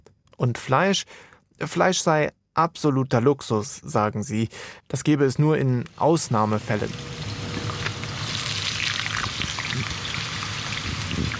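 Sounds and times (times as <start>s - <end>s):
speech: 0.4s - 7.3s
potatoes frying in oil: 5.8s - 11.3s.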